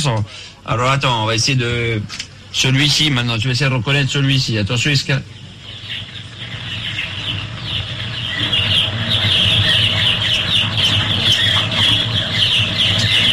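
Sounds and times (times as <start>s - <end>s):
speech: 0.0s - 6.0s
low steady hum: 0.0s - 13.3s
chicks peeping in a henhouse: 5.3s - 13.3s.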